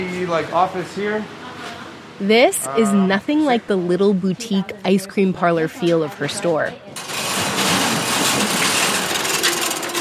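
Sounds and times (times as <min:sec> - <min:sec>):
speech: 0:00.2 - 0:01.4, 0:02.2 - 0:06.8
metal garage door opening: 0:07.0 - 0:09.9.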